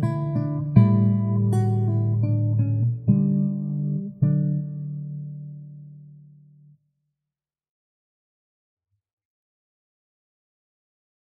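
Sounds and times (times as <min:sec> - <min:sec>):
acoustic guitar playing a minuet in D major: 0:00.0 - 0:06.7.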